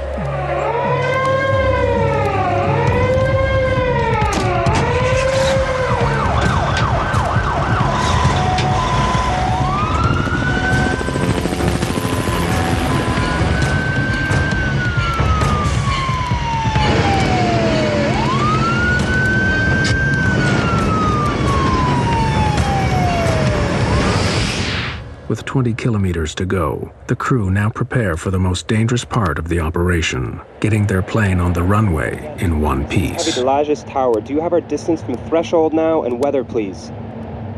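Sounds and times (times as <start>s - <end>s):
emergency vehicle sirens: 0.0s - 25.7s, 29.2s - 33.6s
rumbling traffic: 0.0s - 37.5s
speech: 25.8s - 37.0s.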